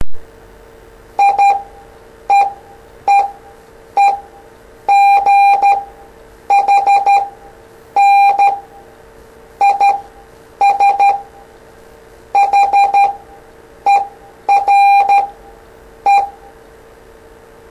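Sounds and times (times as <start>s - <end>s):
morse code beeps: 1.2s - 1.7s, 2.3s - 3.4s, 4.0s - 4.3s, 4.9s - 5.9s, 6.5s - 7.4s, 8.0s - 8.7s, 9.6s - 11.3s, 12.4s - 13.2s, 13.9s - 15.4s, 16.1s - 16.4s.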